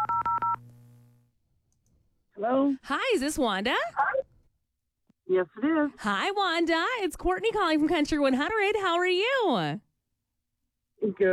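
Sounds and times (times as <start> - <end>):
telephone keypad tones dialing a listener: 0.0 - 0.6
speech: 2.4 - 4.1, 5.3 - 9.8, 11.0 - 11.3.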